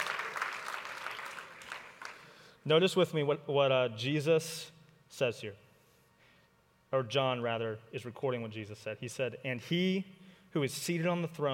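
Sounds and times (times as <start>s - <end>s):
crowd applause: 0.0s - 2.2s
speech: 2.6s - 5.6s, 6.9s - 11.5s.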